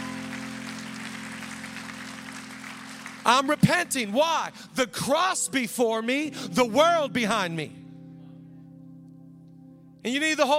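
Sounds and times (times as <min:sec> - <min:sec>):
audience clapping: 0:00.0 - 0:04.1
speech: 0:03.3 - 0:07.8, 0:10.0 - 0:10.5.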